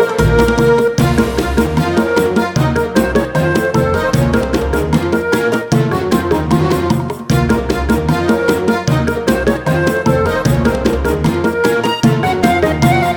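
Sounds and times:
selection screen music loop: 0.2s - 5.2s, 5.8s - 13.1s.

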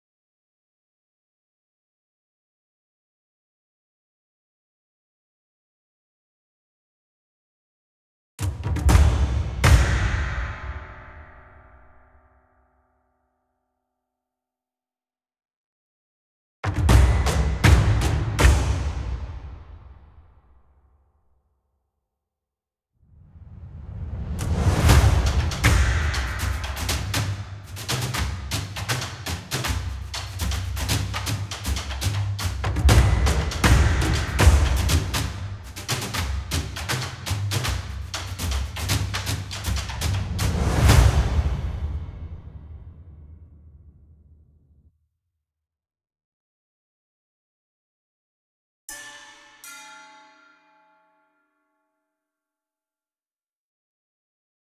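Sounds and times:
real percussion phrase: 8.4s - 11.9s, 16.7s - 20.3s, 23.6s - 43.9s.

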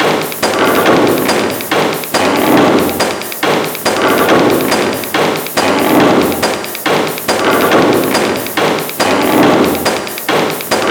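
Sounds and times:
reveal music: 0.0s - 10.8s.

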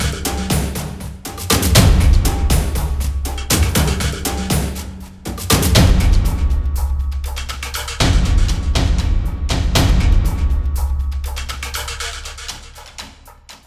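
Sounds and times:
percussion loop: 0.0s - 13.6s.

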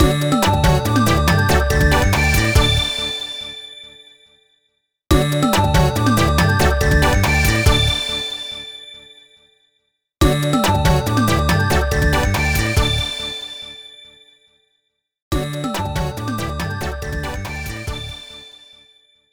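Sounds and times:
microgame success jingle: 0.0s - 3.0s, 5.2s - 8.0s, 10.3s - 13.1s, 15.4s - 18.2s.

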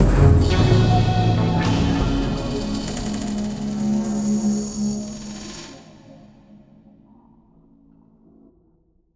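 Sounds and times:
musical stinger: 0.0s - 6.0s.

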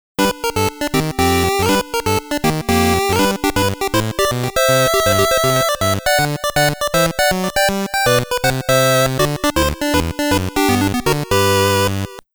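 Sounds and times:
Game Boy chiptune music: 0.2s - 12.2s.

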